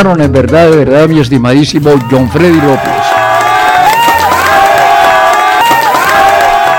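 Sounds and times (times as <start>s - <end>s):
speech: 0.0s - 3.2s
audience applause: 1.8s - 6.7s.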